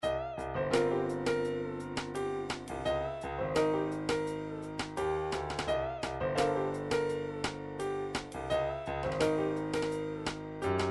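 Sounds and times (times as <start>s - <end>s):
trip hop music: 0.4s - 10.8s.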